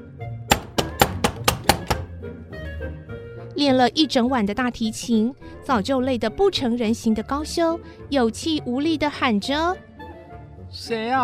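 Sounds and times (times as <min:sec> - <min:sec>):
knocking on a door: 0:00.5 - 0:02.2
speech: 0:03.6 - 0:09.9, 0:10.7 - 0:11.2.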